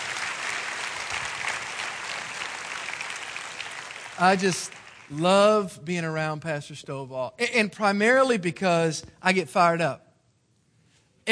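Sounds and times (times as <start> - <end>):
church audience applauding to welcome a guest pastor: 0.0 - 5.7
speech: 4.2 - 10.0.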